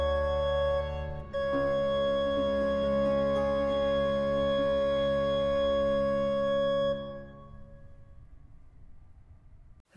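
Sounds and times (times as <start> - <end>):
organ concerto in B flat major: 0.0 - 7.3.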